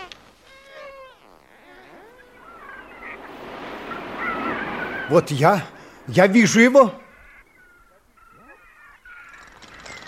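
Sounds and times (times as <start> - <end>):
dolphin whistling calls: 0.6 - 9.3
surf-like rushing wash: 1.6 - 7.5
speech: 5.1 - 7.0.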